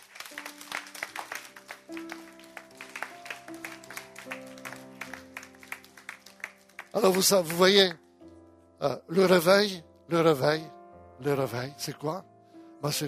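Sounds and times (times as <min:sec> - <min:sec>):
audience applause: 0:00.0 - 0:07.8
speech: 0:07.0 - 0:08.0, 0:08.8 - 0:13.0.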